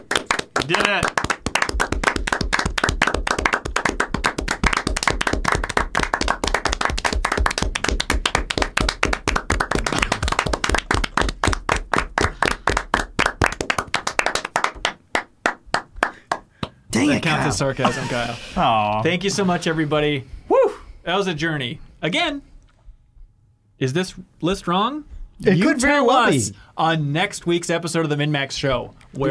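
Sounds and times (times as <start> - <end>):
steady rhythmic clapping: 0.0 - 16.9
speech: 0.6 - 1.3, 17.0 - 20.3, 21.0 - 22.5, 23.8 - 29.2.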